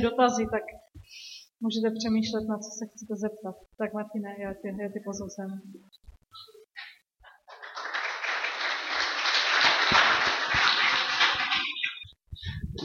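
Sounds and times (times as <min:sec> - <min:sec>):
speech: 0:00.0 - 0:06.5
audience applause: 0:07.5 - 0:11.9.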